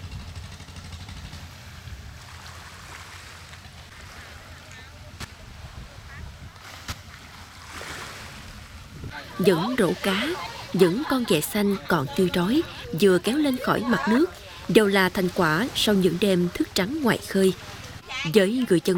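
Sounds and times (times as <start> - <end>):
motorboat engines at a small fishing wharf: 0.0 - 18.9
people buying and selling: 9.1 - 18.9
people chatting and laughing: 9.1 - 18.9
speech: 9.4 - 18.9.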